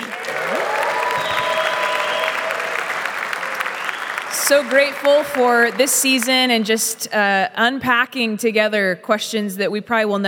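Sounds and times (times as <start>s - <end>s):
live audience applause: 0.0s - 6.6s
speech: 4.5s - 10.2s.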